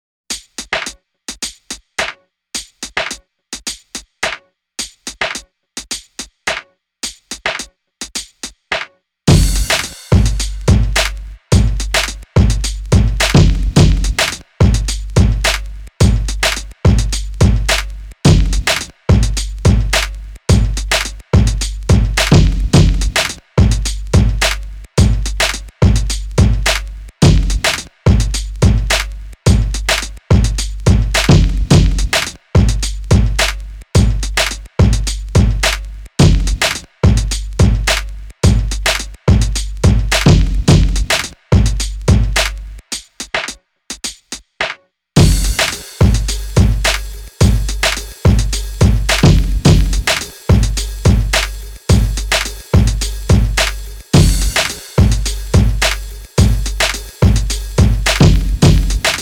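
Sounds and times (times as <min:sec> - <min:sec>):
bonus drum beat: 0:00.3 - 0:08.7, 0:09.3 - 0:44.5, 0:45.2 - 0:59.2.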